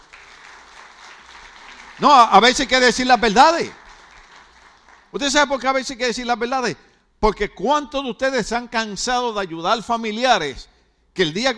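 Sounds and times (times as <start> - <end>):
audience applauding: 0.0 - 5.3
speech: 2.0 - 3.8, 5.1 - 11.5.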